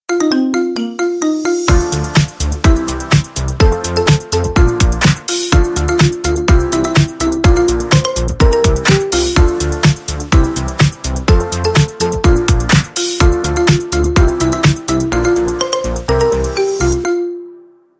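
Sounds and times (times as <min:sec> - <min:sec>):
marimba remix: 0:00.1 - 0:17.7.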